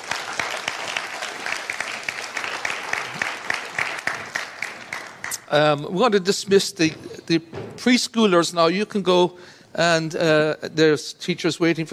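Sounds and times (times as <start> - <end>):
audience clapping: 0.0 - 5.6
speech: 5.5 - 11.9.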